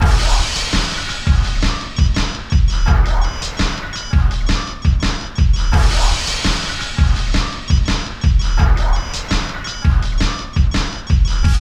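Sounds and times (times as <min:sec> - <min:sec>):
industrial techno music: 0:00.0 - 0:11.6.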